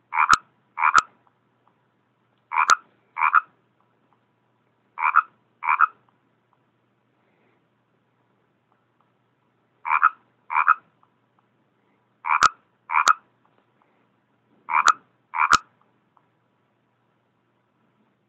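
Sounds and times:
frogs: 0.1 - 1.1, 2.5 - 3.5, 5.0 - 6.0, 9.8 - 10.8, 12.2 - 13.2, 14.7 - 15.7.

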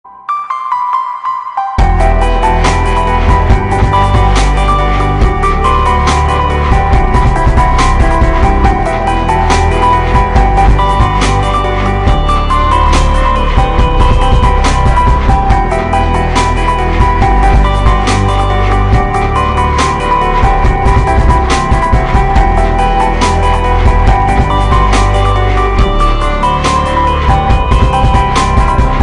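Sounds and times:
chilled dubstep music: 1.6 - 29.0.

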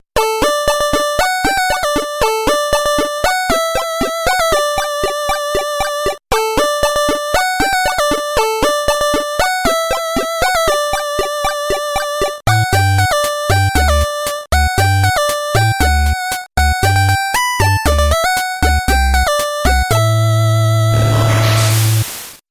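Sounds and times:
8-bit ghost game music: 0.2 - 22.0.

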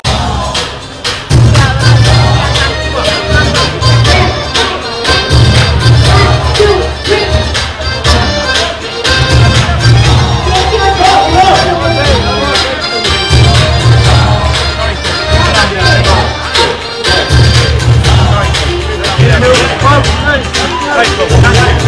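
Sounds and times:
ringtone music: 0.0 - 21.8.

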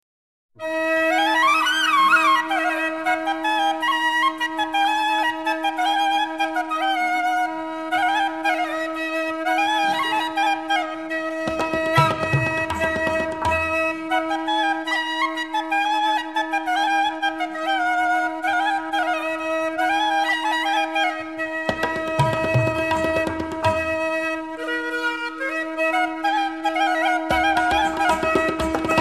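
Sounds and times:
bansuri bamboo flute: 0.6 - 29.0.

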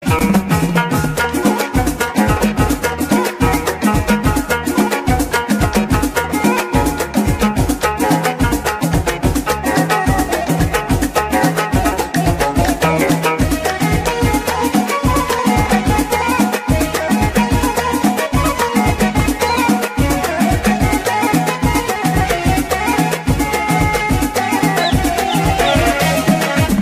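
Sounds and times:
Moroccan music: 0.0 - 26.8.

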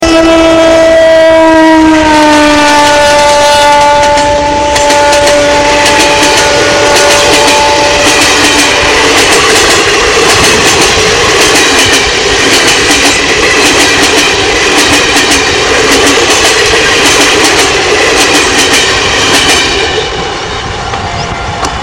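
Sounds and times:
high-speed Indian rail train: 0.0 - 21.8.

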